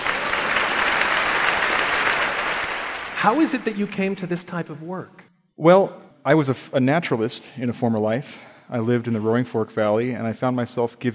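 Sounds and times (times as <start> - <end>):
audience applause: 0.0 - 4.4
speech: 3.2 - 11.1.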